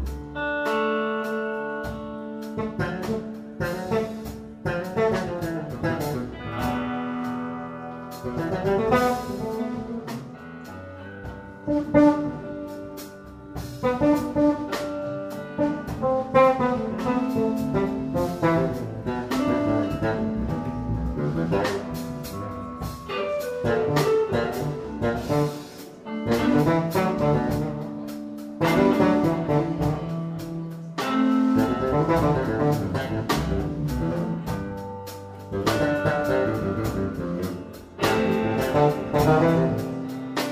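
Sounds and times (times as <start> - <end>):
bass solo: 0.0 - 40.5.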